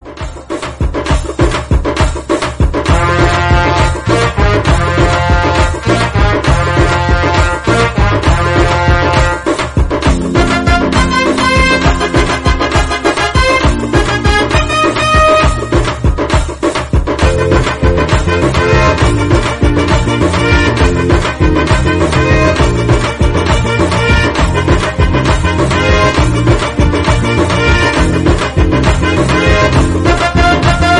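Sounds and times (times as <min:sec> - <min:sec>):
instrumental background music: 0:00.0 - 0:30.9.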